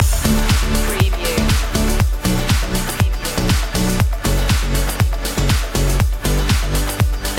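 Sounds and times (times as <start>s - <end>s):
saxophone loop: 0.0s - 7.2s.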